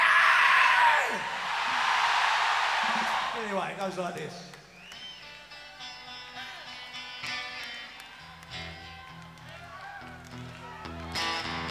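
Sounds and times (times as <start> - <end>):
audience doing a primal scream during a live blues performance: 0.0 - 3.7
speech: 2.9 - 4.6.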